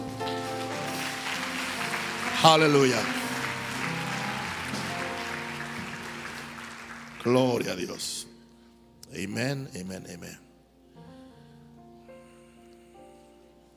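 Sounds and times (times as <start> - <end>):
audience applause: 0.0 - 8.0
speech: 2.4 - 3.2, 7.2 - 8.3, 9.1 - 10.4.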